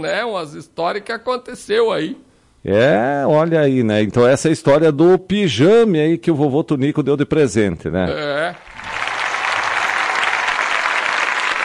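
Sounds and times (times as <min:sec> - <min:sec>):
speech: 0:00.0 - 0:08.7
audience applause: 0:08.6 - 0:11.6.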